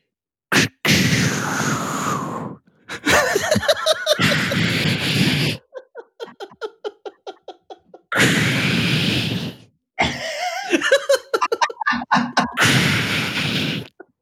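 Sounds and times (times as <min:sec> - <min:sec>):
voice imitating bird lekking display hissing: 0:00.6 - 0:02.6, 0:04.1 - 0:06.6, 0:08.1 - 0:09.7, 0:12.2 - 0:14.0
laughter: 0:03.0 - 0:08.2, 0:10.4 - 0:12.7.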